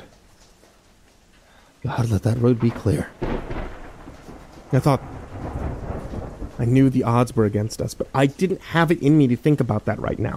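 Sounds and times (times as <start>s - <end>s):
rain rushing: 0.0s - 10.3s
speech: 1.8s - 3.5s, 4.7s - 5.2s, 6.6s - 10.3s
low stormy rumble: 1.8s - 10.3s.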